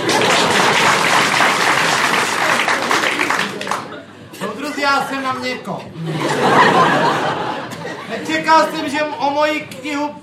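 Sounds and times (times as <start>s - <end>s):
audience applause: 0.0s - 4.0s
laughter: 0.0s - 5.3s, 5.9s - 9.6s
speech: 5.0s - 7.2s, 8.2s - 10.2s.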